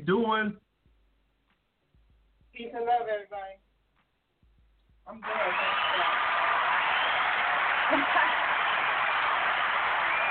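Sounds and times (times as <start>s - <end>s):
speech: 0.0s - 0.6s, 2.6s - 3.7s, 5.1s - 6.2s
hand claps sound effect: 5.2s - 10.2s.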